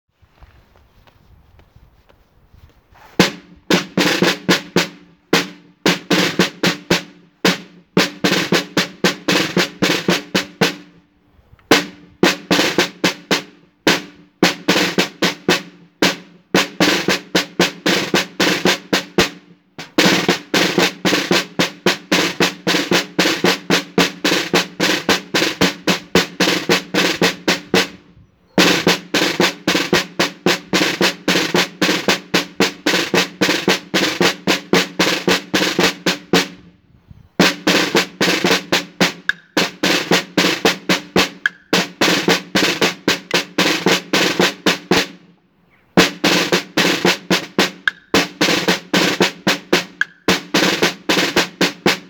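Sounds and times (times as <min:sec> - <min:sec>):
live drum march: 0:03.2 - 0:11.0, 0:11.7 - 0:36.7, 0:37.4 - 0:45.3, 0:46.0 - 0:52.0.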